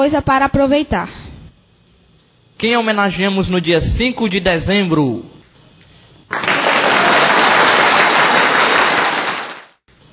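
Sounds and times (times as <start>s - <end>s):
speech: 0.0s - 1.2s, 2.6s - 5.3s
everyone clapping at once: 6.3s - 9.8s.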